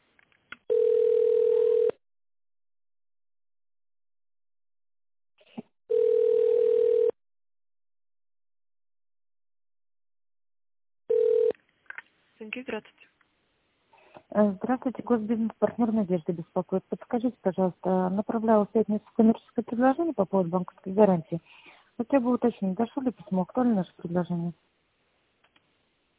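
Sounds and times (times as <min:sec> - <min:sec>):
telephone ringing tone while a call is transferred: 0:00.7 - 0:02.0, 0:05.9 - 0:07.2, 0:11.1 - 0:11.5
speech: 0:12.5 - 0:13.1, 0:14.3 - 0:24.7.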